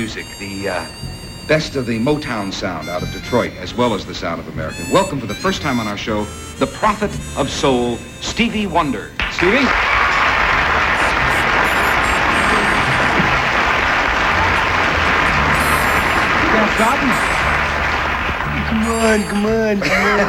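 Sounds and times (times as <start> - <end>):
speech: 0.0 - 10.0, 16.8 - 17.4, 18.8 - 20.2
laughter: 0.0 - 20.2
studio audience applause: 9.2 - 20.2.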